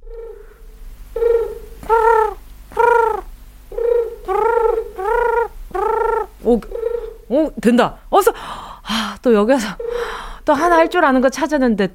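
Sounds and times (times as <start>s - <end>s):
pigeon cooing: 0.0s - 7.4s, 9.6s - 11.0s
low continuous rumble: 0.0s - 11.9s
speech: 1.9s - 2.4s, 6.5s - 9.8s, 10.4s - 11.9s.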